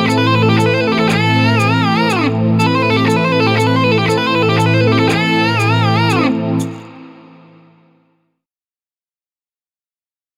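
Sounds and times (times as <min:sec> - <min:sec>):
metal legato: 0:00.0 - 0:08.0.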